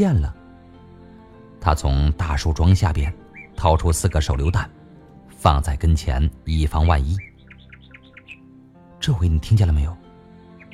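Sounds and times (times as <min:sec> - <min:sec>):
speech: 0:00.0 - 0:00.4, 0:01.6 - 0:04.8, 0:05.4 - 0:07.3, 0:09.0 - 0:10.0
nightingale singing: 0:01.8 - 0:04.8, 0:06.0 - 0:09.5, 0:10.5 - 0:10.7.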